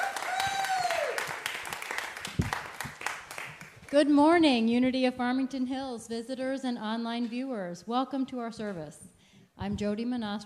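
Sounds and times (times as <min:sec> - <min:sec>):
congregation at a Sunday church service applauding the music team: 0:00.0 - 0:03.9
speech: 0:03.9 - 0:10.4.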